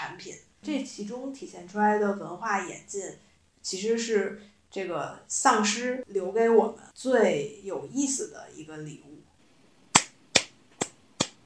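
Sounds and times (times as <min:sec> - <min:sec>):
speech: 0:00.2 - 0:09.3
one person's sparse clapping: 0:10.0 - 0:11.4.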